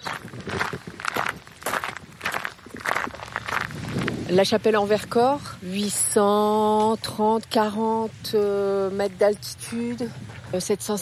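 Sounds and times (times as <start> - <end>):
footsteps on a walk through La Chapelle-en-Vercors: 0.0 - 5.6, 9.3 - 10.9
speech: 4.3 - 10.9.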